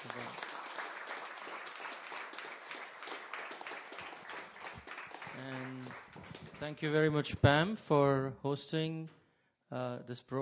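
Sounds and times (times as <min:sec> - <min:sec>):
audience applause: 0:00.0 - 0:06.7
speech: 0:06.6 - 0:10.3.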